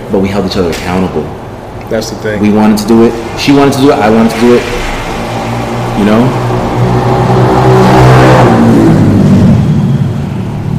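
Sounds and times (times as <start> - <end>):
speech: 0.1 - 4.9, 6.0 - 6.5
motorcycle engine revving: 2.8 - 10.7.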